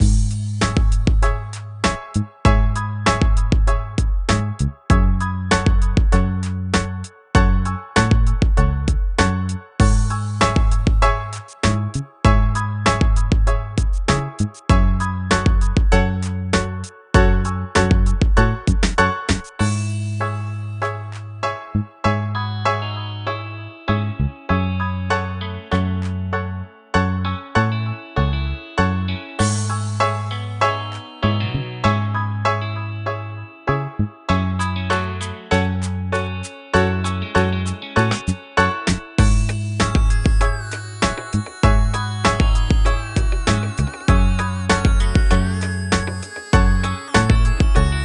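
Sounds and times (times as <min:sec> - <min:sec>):
beautiful music: 0:00.0 - 0:48.0.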